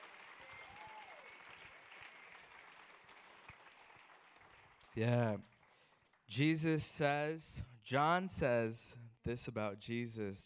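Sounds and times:
audience applauding: 0:00.0 - 0:06.2
speech: 0:05.0 - 0:05.5, 0:06.3 - 0:10.4.

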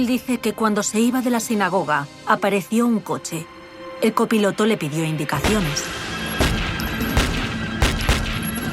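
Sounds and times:
speech: 0:00.0 - 0:06.1
gunshots: 0:06.4 - 0:08.6.

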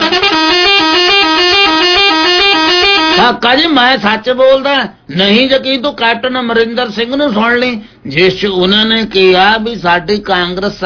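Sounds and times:
musical car horn honking: 0:00.0 - 0:03.4
speech: 0:03.2 - 0:10.8.

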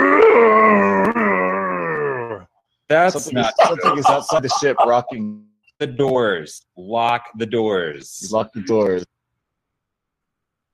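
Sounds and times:
voice imitating a monster's roar: 0:00.0 - 0:02.5
speech: 0:02.9 - 0:09.1
laughter: 0:03.1 - 0:05.3.

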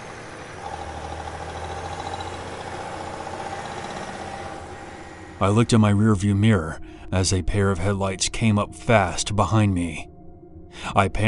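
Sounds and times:
truck engine revving: 0:00.0 - 0:05.8
speech: 0:05.4 - 0:10.1, 0:10.8 - 0:11.2.

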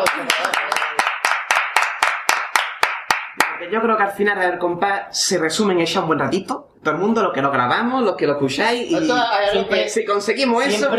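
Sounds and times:
speech: 0:00.0 - 0:00.5, 0:03.6 - 0:10.9
rhythmic clapping: 0:00.0 - 0:03.8.

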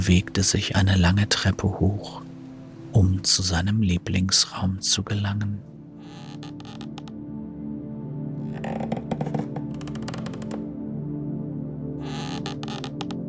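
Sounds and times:
speech: 0:00.0 - 0:02.3, 0:02.9 - 0:06.9
heavy oak door creaking open: 0:06.0 - 0:07.1, 0:08.4 - 0:10.7, 0:12.0 - 0:13.2.

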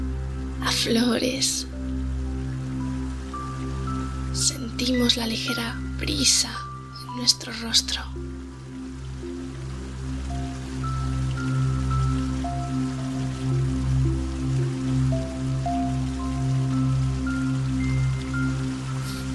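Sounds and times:
ambient music with low drones and sparse notes: 0:00.0 - 0:19.3
water flowing from stone fountain: 0:00.0 - 0:19.3
speech: 0:00.6 - 0:02.0, 0:04.4 - 0:08.2.

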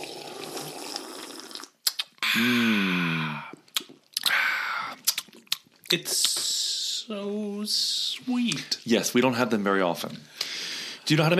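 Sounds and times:
person sipping a French martini: 0:00.0 - 0:05.9
speech: 0:02.3 - 0:03.1, 0:05.9 - 0:06.4, 0:07.1 - 0:10.4, 0:11.1 - 0:11.3.

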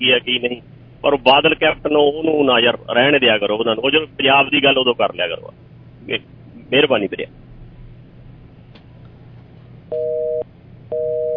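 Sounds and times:
speech: 0:00.0 - 0:07.4
telephone busy tone after a cut call line: 0:09.9 - 0:11.3.

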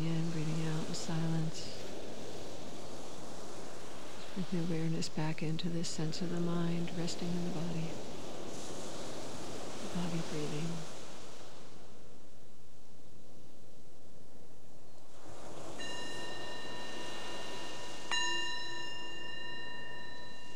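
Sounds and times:
meditation bells: 0:00.0 - 0:10.8, 0:15.0 - 0:20.5
speech: 0:04.4 - 0:08.3, 0:10.0 - 0:10.9.

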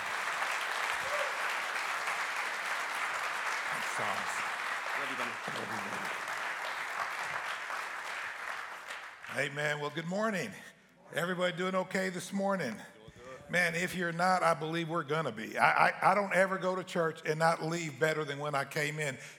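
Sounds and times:
audience applause welcoming a guest pastor at a church service: 0:00.0 - 0:09.6
speech: 0:04.0 - 0:04.4, 0:05.0 - 0:06.3, 0:09.3 - 0:12.9, 0:13.5 - 0:19.3.

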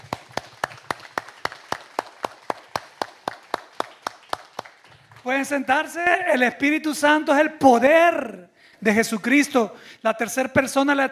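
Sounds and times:
audience clapping in a steady even rhythm: 0:00.0 - 0:06.2
speech: 0:05.2 - 0:11.1.

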